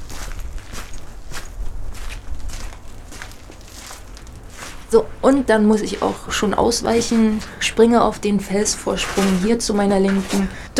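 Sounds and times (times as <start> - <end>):
video game character's crunching footsteps walking into a cave: 0.0 - 10.7
speech: 4.9 - 10.7.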